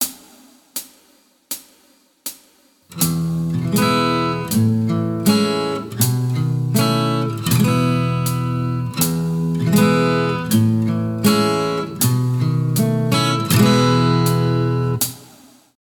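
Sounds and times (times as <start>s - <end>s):
guitar licks: 2.9s - 15.1s.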